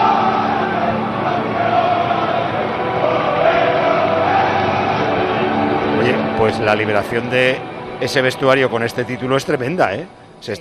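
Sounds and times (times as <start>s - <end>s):
football players shouting and cheering in celebration: 0.0s - 7.5s
speech: 6.5s - 10.5s.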